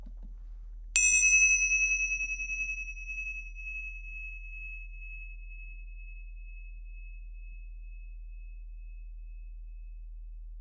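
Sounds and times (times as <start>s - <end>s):
small meditation cymbals ringing: 1.0s - 4.6s.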